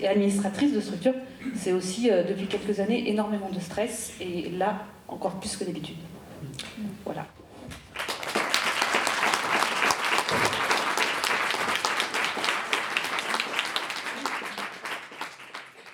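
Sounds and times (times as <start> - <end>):
speech: 0.0 - 7.4
audience applause: 7.9 - 15.9.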